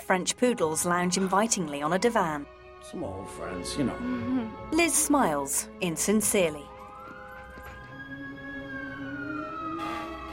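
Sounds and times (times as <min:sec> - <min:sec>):
speech: 0:00.1 - 0:06.7
fire truck siren: 0:06.7 - 0:10.3.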